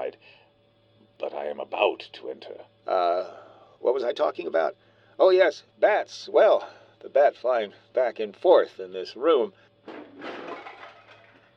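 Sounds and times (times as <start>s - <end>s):
speech: 1.2s - 10.3s
heavy chair knocked over in a dressing room: 9.9s - 11.3s.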